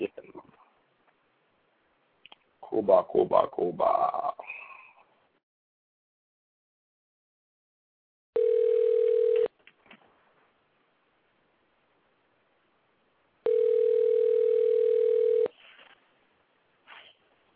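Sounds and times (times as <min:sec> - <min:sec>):
speech: 0:02.8 - 0:04.0
phone ringing tone on a call: 0:08.4 - 0:09.5, 0:13.4 - 0:15.5.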